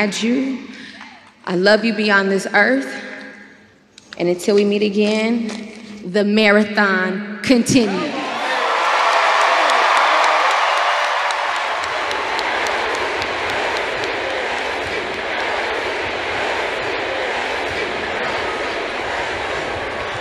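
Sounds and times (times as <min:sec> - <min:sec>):
speech: 0:00.0 - 0:00.8, 0:01.4 - 0:03.1, 0:04.2 - 0:08.2
crowd clapping: 0:08.4 - 0:20.2.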